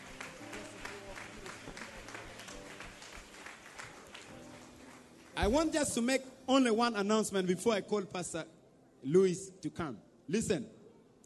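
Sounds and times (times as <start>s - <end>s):
audience clapping: 0.0s - 6.0s
speech: 5.4s - 10.8s.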